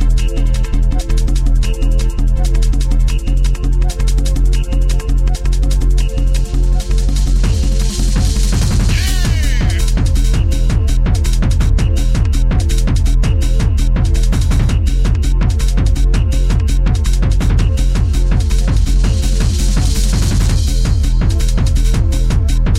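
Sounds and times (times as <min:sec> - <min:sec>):
bass: 0:00.0 - 0:22.7.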